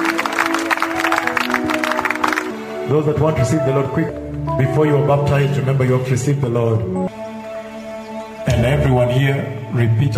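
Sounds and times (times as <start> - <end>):
audience clapping: 0.0 - 2.9
speech: 2.9 - 7.1, 8.6 - 10.1.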